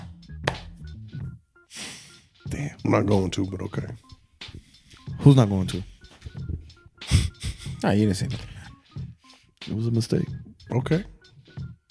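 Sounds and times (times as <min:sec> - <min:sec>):
single hand clap marking an edit: 0:00.0 - 0:00.8
speech: 0:02.5 - 0:04.1, 0:05.2 - 0:05.9, 0:07.8 - 0:08.5, 0:09.7 - 0:11.2.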